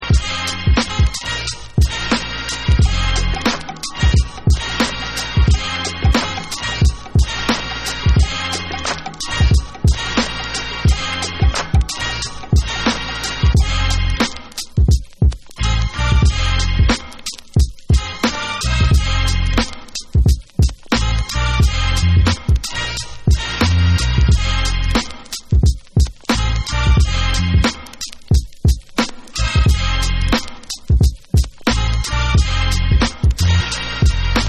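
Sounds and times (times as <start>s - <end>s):
instrumental music: 0.0s - 34.4s.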